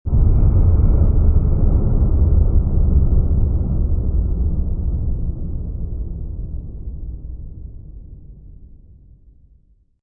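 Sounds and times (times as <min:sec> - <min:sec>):
deep reverberant distant space explosion: 0:00.1 - 0:07.7.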